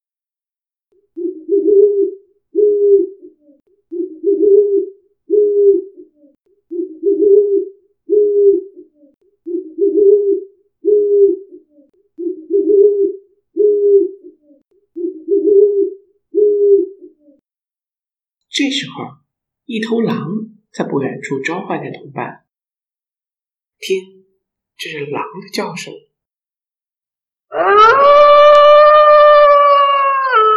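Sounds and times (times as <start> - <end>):
owl hooting: 1.2 - 17.4, 27.5 - 30.5
speech: 18.6 - 22.4, 23.8 - 24.2, 24.8 - 26.1.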